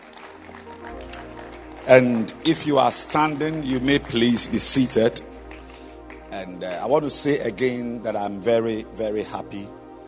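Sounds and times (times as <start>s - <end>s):
applause: 0.0s - 7.7s
speech: 1.8s - 5.3s, 6.4s - 9.8s.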